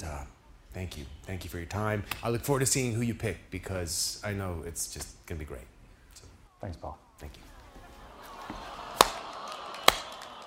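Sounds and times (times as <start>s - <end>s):
speech: 0.7s - 5.7s, 6.6s - 7.5s
laughter: 7.4s - 10.4s
slow clapping: 8.2s - 10.4s.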